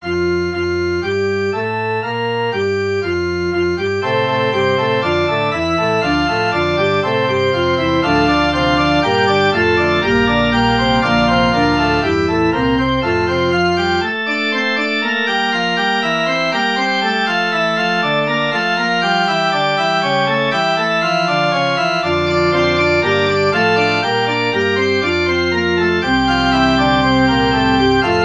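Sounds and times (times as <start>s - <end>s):
musical prelude: 0.0s - 28.2s.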